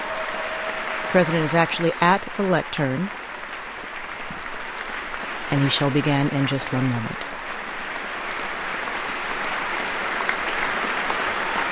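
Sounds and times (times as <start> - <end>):
standing ovation applause in a chamber: 0.0 - 11.7
speech: 1.1 - 3.2, 5.5 - 7.3.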